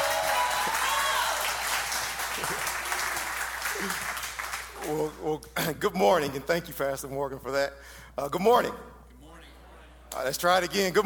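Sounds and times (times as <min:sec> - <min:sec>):
church congregation applauding to welcome a guest speaker: 0:00.0 - 0:05.2
speech: 0:04.9 - 0:09.0, 0:10.2 - 0:11.0.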